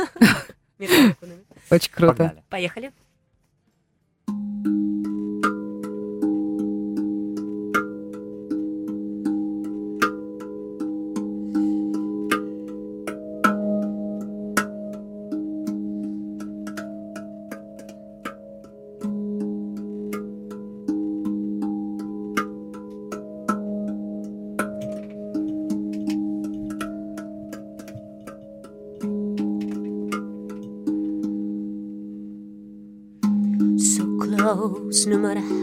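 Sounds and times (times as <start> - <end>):
laughter: 0.0 - 1.2
speech: 0.0 - 3.0
melody on a metal percussion instrument: 4.3 - 35.6.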